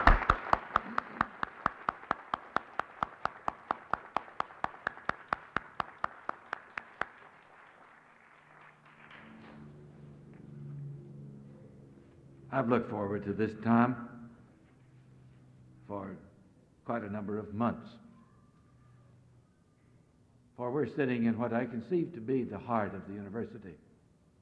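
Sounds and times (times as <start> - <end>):
audience applause: 0.0 - 9.6
speech: 12.6 - 14.1, 17.0 - 18.0, 20.8 - 23.9.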